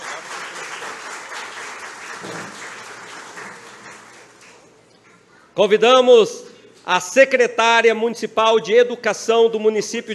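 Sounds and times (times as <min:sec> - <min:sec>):
crowd applause: 0:00.0 - 0:04.7
speech: 0:05.6 - 0:10.1.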